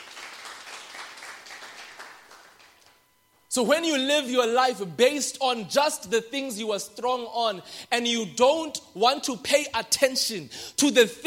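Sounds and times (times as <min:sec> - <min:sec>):
crowd applauding: 0:00.0 - 0:03.0
speech: 0:03.6 - 0:11.2.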